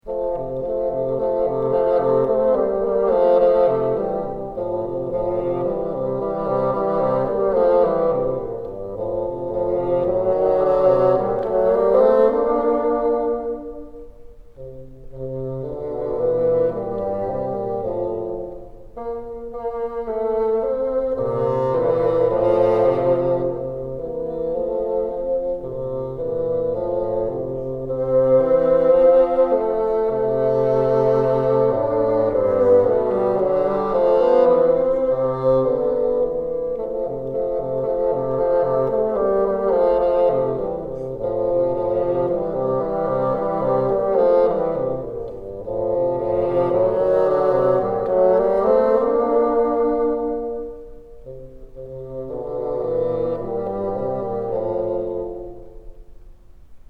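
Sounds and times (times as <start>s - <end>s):
bassoon: 0.0s - 56.8s.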